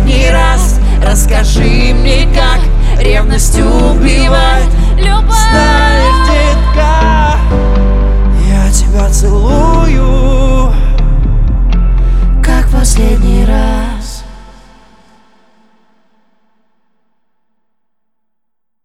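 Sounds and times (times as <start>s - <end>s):
live acoustic music: 0.0s - 14.8s.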